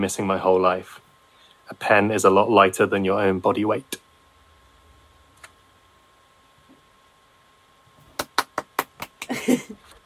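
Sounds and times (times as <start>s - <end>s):
speech: 0.0s - 1.0s, 1.7s - 4.0s
hand clapping: 8.0s - 9.5s.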